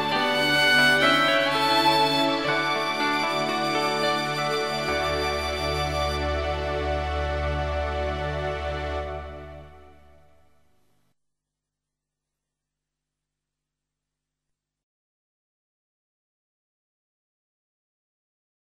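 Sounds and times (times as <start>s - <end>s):
violin: 0.0s - 10.2s.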